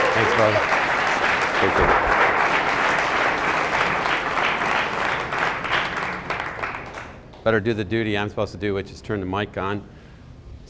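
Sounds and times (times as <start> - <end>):
crowd applauding: 0.0 - 7.4
speech: 0.2 - 0.8, 1.6 - 2.1, 7.4 - 10.0.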